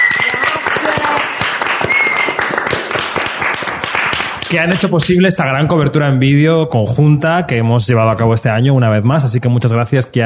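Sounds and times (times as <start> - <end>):
whistle-like tone: 0.0 - 0.5, 1.8 - 2.4
crowd applauding: 0.0 - 4.9
speech: 4.5 - 10.2.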